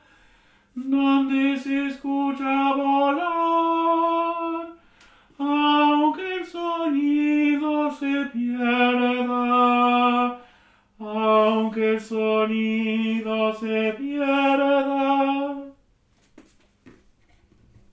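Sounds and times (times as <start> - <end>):
tenor singing: 0.8 - 4.8, 5.4 - 10.4, 11.0 - 15.8.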